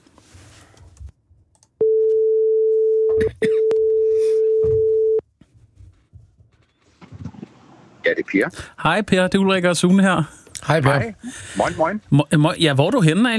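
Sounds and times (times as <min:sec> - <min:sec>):
telephone ringback tone: 0:01.8 - 0:05.2
speech: 0:08.3 - 0:13.3.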